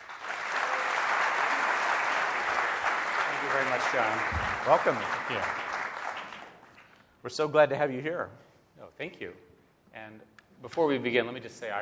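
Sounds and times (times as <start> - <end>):
audience applause at the Computer History Museum: 0.0 - 6.9
speech: 3.7 - 5.6, 7.2 - 11.8.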